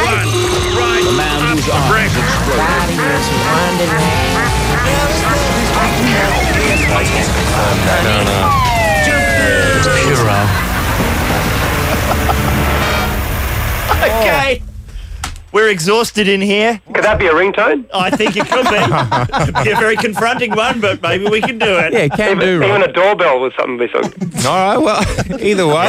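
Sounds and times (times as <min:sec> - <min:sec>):
cacophony of aooga horn sound effects: 0:00.0 - 0:14.6
honking and siren-like effects: 0:00.0 - 0:14.6
laughter: 0:00.6 - 0:14.4, 0:17.9 - 0:23.0, 0:23.9 - 0:25.8
speech: 0:14.0 - 0:14.7, 0:15.6 - 0:25.8.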